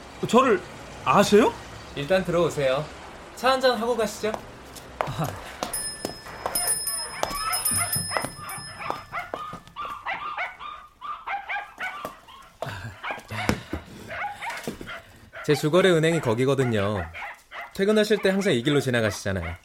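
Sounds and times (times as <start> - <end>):
speech: 0.2 - 5.5, 15.5 - 17.2, 17.8 - 19.6
laughter: 5.0 - 5.6, 12.6 - 13.8
thin ringing tone: 5.7 - 9.8
puppy barking: 6.6 - 19.6.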